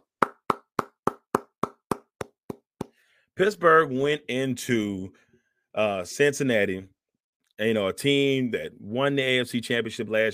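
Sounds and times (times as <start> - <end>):
hand clap: 0.0 - 3.0
speech: 3.4 - 7.0, 7.6 - 10.3.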